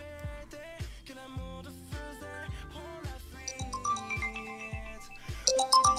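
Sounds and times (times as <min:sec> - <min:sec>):
mobile phone ringtone: 0:03.5 - 0:05.9.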